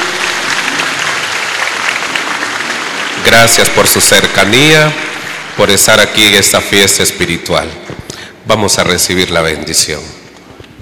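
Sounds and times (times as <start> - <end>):
audience applauding: 0.0 - 6.6
speech: 3.2 - 10.2.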